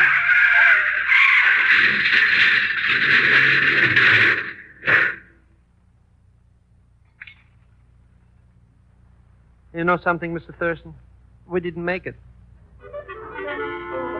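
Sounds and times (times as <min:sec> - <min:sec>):
car tire hissing screech, radio drama effect: 0:00.0 - 0:05.3
speech: 0:09.8 - 0:12.3.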